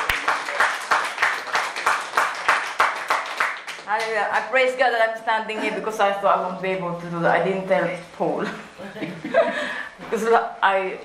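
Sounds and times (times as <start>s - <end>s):
audience clapping hands: 0.0s - 4.2s
speech: 4.0s - 11.0s.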